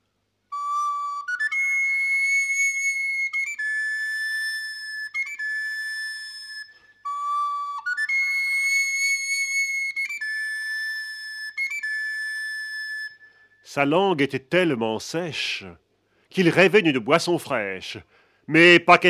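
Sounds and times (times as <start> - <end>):
flute melody: 0.5 - 13.9
speech: 13.7 - 19.0.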